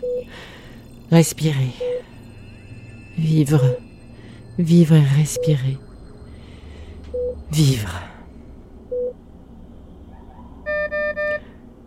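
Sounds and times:
infusion machine end-of-chemotherapy alarm beeping: 0:00.0 - 0:07.7
steady low hum: 0:00.0 - 0:11.8
speech: 0:01.1 - 0:01.9, 0:03.2 - 0:03.8, 0:04.6 - 0:05.8, 0:07.5 - 0:08.1.

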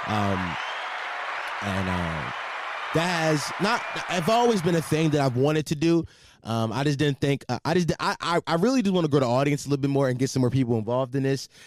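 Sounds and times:
speech: 0:00.0 - 0:00.6, 0:01.6 - 0:11.6
applause: 0:00.0 - 0:05.6.

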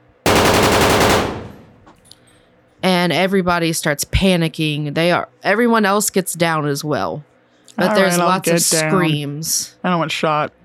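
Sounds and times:
gunshots fired into the air: 0:00.3 - 0:01.9
speech: 0:03.0 - 0:10.6.

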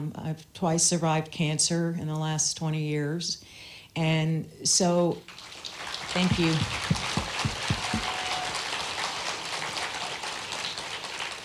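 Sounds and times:
speech: 0:00.0 - 0:05.4, 0:06.1 - 0:07.2
crowd audience applause: 0:05.4 - 0:11.4.

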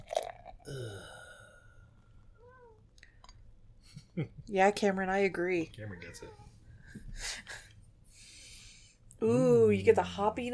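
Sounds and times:
beer pouring into a glass: 0:00.0 - 0:01.0
speech: 0:00.7 - 0:01.2, 0:04.2 - 0:07.6, 0:09.2 - 0:10.5.

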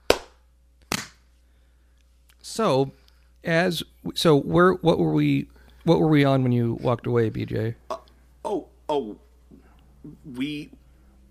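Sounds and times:
single hand clap for sync: 0:00.0 - 0:01.2
speech: 0:02.5 - 0:09.2, 0:10.0 - 0:10.8.

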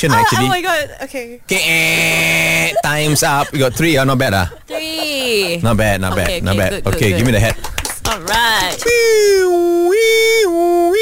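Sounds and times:
speech: 0:00.0 - 0:10.9
laughter: 0:01.6 - 0:07.8
voice imitating an ambulance siren: 0:08.8 - 0:10.9.

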